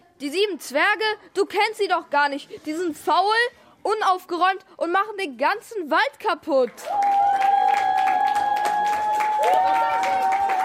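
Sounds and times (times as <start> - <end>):
speech: 0.2 - 7.5, 9.5 - 10.4
audience applause after a play: 6.8 - 10.6.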